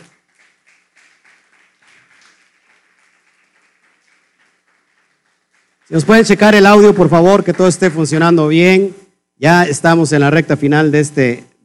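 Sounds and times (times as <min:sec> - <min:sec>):
audience applause: 0:00.0 - 0:07.0
speech: 0:05.9 - 0:11.5.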